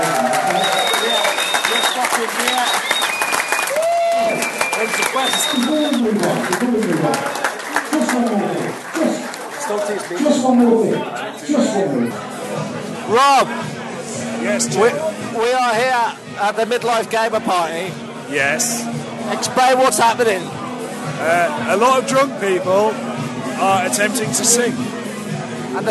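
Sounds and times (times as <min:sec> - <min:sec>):
audience applause: 0:00.0 - 0:10.6
speech: 0:10.1 - 0:12.2, 0:13.1 - 0:13.6, 0:14.5 - 0:25.0.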